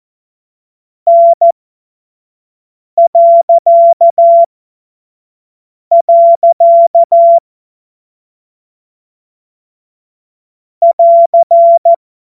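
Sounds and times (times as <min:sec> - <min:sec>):
morse code CW: 0:03.0 - 0:04.5, 0:05.9 - 0:07.4, 0:10.8 - 0:12.0.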